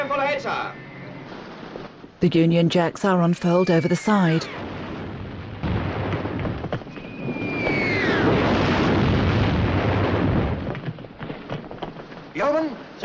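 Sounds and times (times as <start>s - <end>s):
speech: 0.1s - 0.9s, 2.2s - 4.6s
high descending whistle: 3.4s - 4.6s, 7.0s - 8.4s
shells exploding in water: 4.6s - 12.2s.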